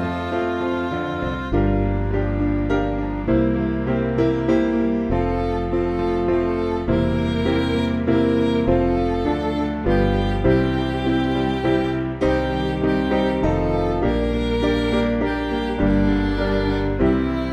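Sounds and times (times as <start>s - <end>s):
MIDI church backing music: 0.0s - 17.5s.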